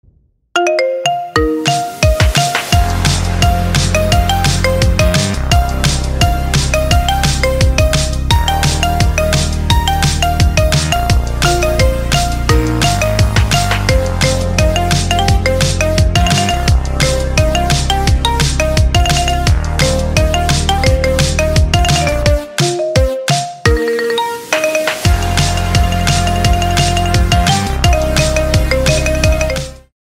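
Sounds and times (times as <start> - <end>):
marimba remix: 0.6 - 29.9.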